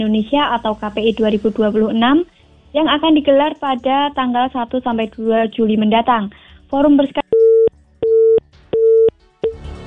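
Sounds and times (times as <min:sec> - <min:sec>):
speech: 0:00.0 - 0:07.2
telephone busy tone after a dropped phone line to the studio: 0:07.4 - 0:09.6.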